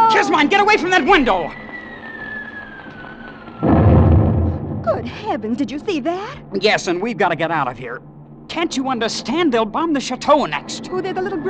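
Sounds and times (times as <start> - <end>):
speech: 0.2 - 1.6, 5.0 - 11.4
anti-aircraft gunfire sound effect in a radio drama: 3.6 - 5.8.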